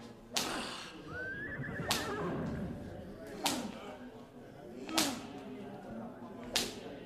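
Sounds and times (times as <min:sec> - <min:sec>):
sharp whip-like cracks: 0:00.3 - 0:00.7, 0:03.4 - 0:03.8, 0:04.9 - 0:05.4, 0:06.4 - 0:06.9
horse whinnying in a radio drama: 0:01.1 - 0:02.9.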